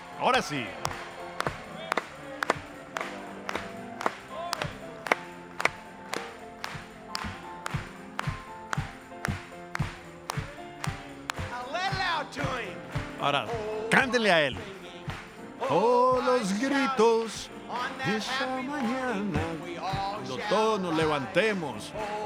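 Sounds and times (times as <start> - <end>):
church audience applauding: 0.0 - 15.5
speech: 0.2 - 1.0, 14.3 - 14.7, 15.7 - 22.2.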